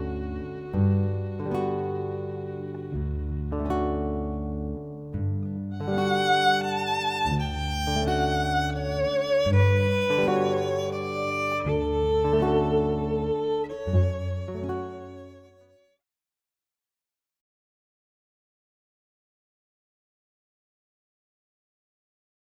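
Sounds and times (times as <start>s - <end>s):
violin: 0.0s - 4.5s, 5.7s - 15.8s
guitar: 0.0s - 15.6s
cello: 0.0s - 15.8s.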